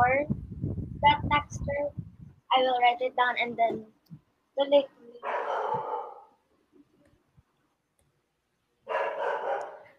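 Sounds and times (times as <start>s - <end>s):
speech: 1.3s - 4.0s, 4.6s - 5.9s
dog barking: 5.2s - 6.4s, 8.8s - 9.9s.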